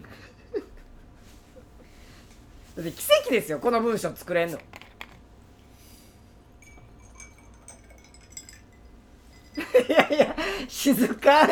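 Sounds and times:
speech: 2.8s - 4.8s, 10.9s - 11.5s
drink poured into a glass: 6.6s - 9.6s
faint glassy clinks and chimes: 6.6s - 10.3s
laughter: 9.6s - 11.5s.

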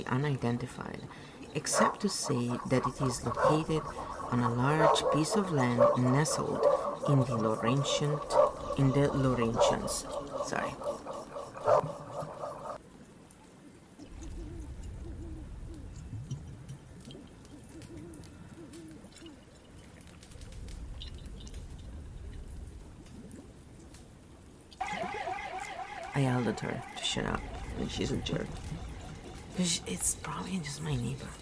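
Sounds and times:
speech: 0.0s - 10.8s, 11.6s - 12.0s, 26.2s - 28.9s, 29.6s - 31.4s
dog slurping and lapping: 1.5s - 12.8s, 24.8s - 31.4s.

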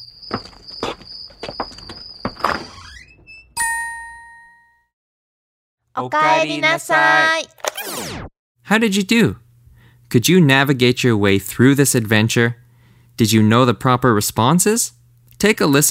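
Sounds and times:
front door opening and closing: 0.3s - 3.6s
speech: 6.0s - 9.4s, 10.1s - 12.6s, 13.2s - 15.8s.

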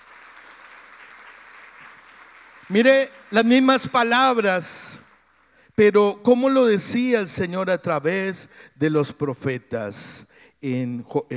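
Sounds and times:
audience applause: 0.0s - 3.9s
speech: 2.7s - 5.0s, 5.8s - 11.3s.

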